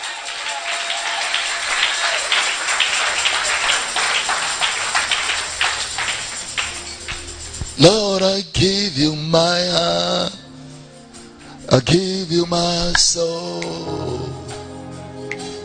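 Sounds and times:
audience clapping hands: 0:00.0 - 0:08.4
speech: 0:07.8 - 0:10.4, 0:11.7 - 0:14.3.

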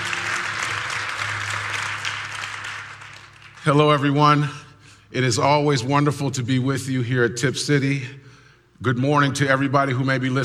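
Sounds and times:
audience applauding: 0:00.0 - 0:03.9
speech: 0:03.6 - 0:08.2, 0:08.8 - 0:10.4.

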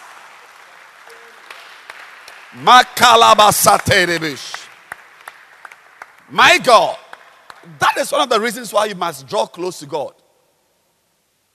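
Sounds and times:
audience clapping hands: 0:00.0 - 0:08.6
speech: 0:02.5 - 0:04.6, 0:06.3 - 0:07.0, 0:07.6 - 0:10.2.

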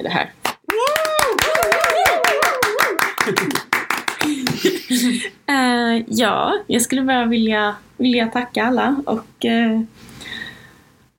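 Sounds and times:
speech: 0:00.0 - 0:00.9, 0:03.2 - 0:03.6, 0:05.0 - 0:10.4
applause: 0:00.4 - 0:04.7
laughter: 0:03.1 - 0:05.3.

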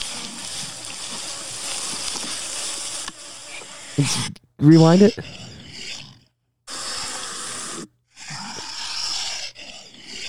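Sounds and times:
Komodo dragon vocalization: 0:00.0 - 0:10.2
speech: 0:04.0 - 0:05.4.

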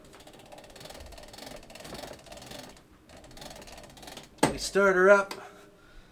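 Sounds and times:
hand crank winding a phonograph spring: 0:00.0 - 0:04.6
speech: 0:04.6 - 0:05.4.

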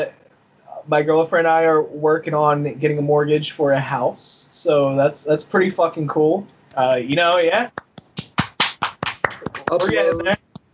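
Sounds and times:
speech: 0:00.0 - 0:00.2, 0:00.8 - 0:07.8, 0:09.7 - 0:10.4
applause sound effect: 0:08.2 - 0:10.7.

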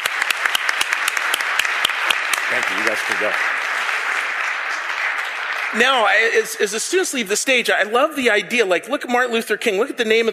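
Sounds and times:
audience applause: 0:00.0 - 0:07.1
speech: 0:02.5 - 0:03.6, 0:05.7 - 0:10.3.

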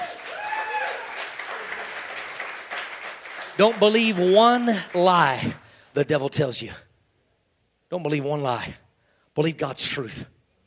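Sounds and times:
audience hand clapping: 0:00.0 - 0:05.8
speech: 0:03.6 - 0:06.8, 0:07.9 - 0:08.8, 0:09.4 - 0:10.3.

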